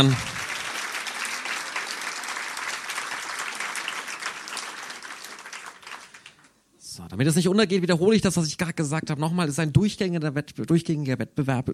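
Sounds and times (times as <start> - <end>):
speech: 0.0 - 0.3, 7.1 - 11.7
audience applause: 0.0 - 6.6.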